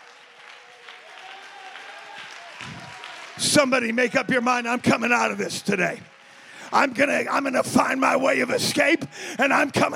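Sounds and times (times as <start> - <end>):
crowd clapping: 0.0 - 9.9
speech: 3.4 - 6.1, 6.7 - 9.9.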